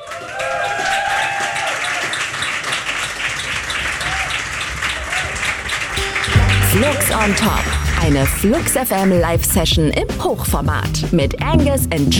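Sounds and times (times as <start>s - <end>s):
audience applause after a live music session on a rooftop terrace: 0.0s - 9.2s
speech: 6.8s - 12.1s.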